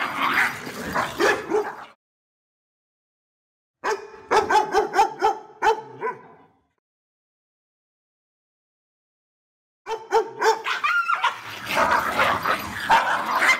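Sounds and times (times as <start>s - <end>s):
dog barking: 0.0s - 2.0s, 3.8s - 6.6s, 9.9s - 13.5s.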